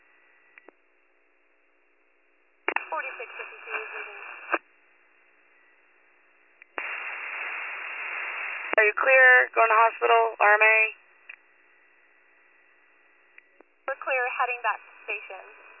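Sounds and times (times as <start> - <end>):
radio static: 2.7 - 4.6, 6.8 - 10.9, 13.9 - 15.7
speech: 3.0 - 4.0, 8.8 - 11.0, 14.0 - 15.6.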